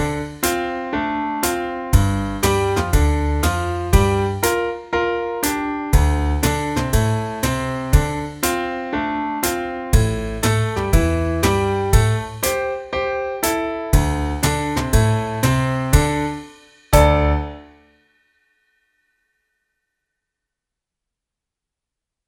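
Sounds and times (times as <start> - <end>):
blues music: 0.0 - 17.6.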